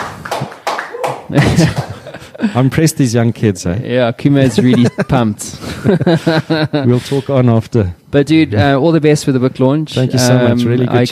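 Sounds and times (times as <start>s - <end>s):
clapping: 0.0s - 1.9s
speech: 1.3s - 1.8s, 2.6s - 11.1s
laughter: 1.3s - 2.6s, 4.4s - 7.2s.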